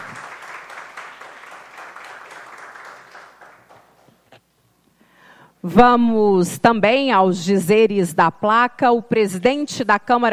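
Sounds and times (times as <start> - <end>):
round of applause: 0.0 - 4.2
speech: 5.6 - 10.3.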